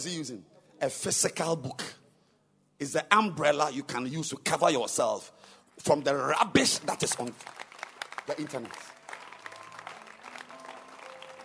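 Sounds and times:
speech: 0:00.0 - 0:02.0, 0:02.8 - 0:07.7, 0:08.3 - 0:08.9
audience applause: 0:07.0 - 0:11.4.

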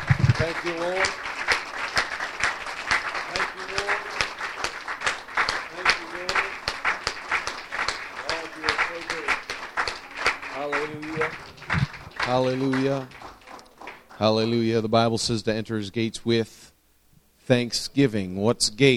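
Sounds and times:
audience clapping hands: 0:00.0 - 0:14.8
speech: 0:00.4 - 0:01.3, 0:12.3 - 0:13.2, 0:14.2 - 0:16.6, 0:17.5 - 0:18.9.

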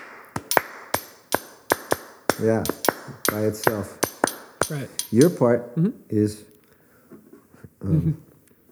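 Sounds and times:
chopstick tapping a cup: 0:00.4 - 0:05.5
speech: 0:02.4 - 0:04.0, 0:04.7 - 0:06.5, 0:07.8 - 0:08.3.

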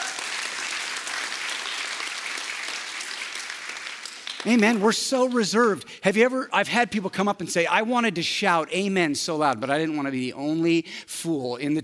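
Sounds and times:
crowd clapping: 0:00.0 - 0:05.6
speech: 0:04.4 - 0:11.8.

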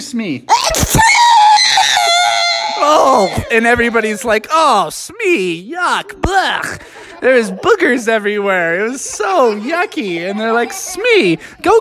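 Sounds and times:
speech: 0:00.0 - 0:01.1, 0:02.8 - 0:11.7
voice acting out an exaggerated sneeze: 0:00.5 - 0:04.2.

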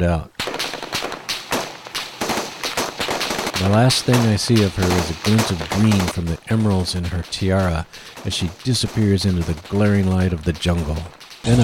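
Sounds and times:
speech: 0:00.0 - 0:00.4, 0:03.6 - 0:11.6
gunfire from many weapons opening fire in a jungle: 0:00.4 - 0:11.6.

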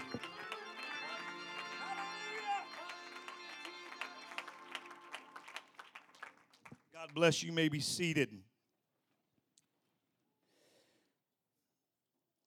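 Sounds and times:
audience clapping hands in praise: 0:00.0 - 0:08.2
speech: 0:07.1 - 0:08.4.

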